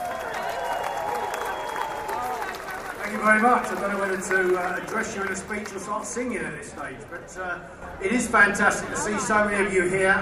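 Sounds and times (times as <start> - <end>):
audience applause for a TUC regional union speaker: 0.0 - 7.2
speech: 3.1 - 10.2.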